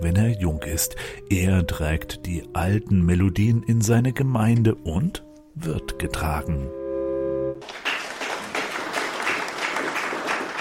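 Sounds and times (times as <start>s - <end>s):
speech: 0.0s - 6.8s
applause in a church: 7.6s - 10.5s.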